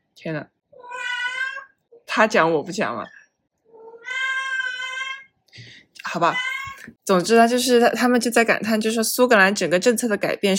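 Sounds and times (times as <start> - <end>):
speech: 0.2 - 0.6, 2.1 - 3.2, 5.6 - 10.5
cat meowing: 0.8 - 1.8, 3.8 - 5.3, 6.3 - 6.8.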